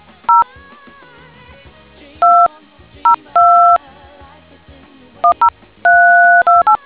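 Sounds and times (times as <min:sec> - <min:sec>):
DTMF tones: 0:03.1 - 0:03.8, 0:05.3 - 0:06.8.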